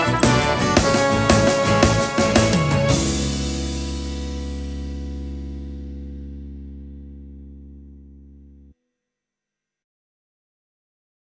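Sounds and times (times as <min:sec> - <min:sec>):
enthusiastic instrumental background music: 0:00.0 - 0:08.7.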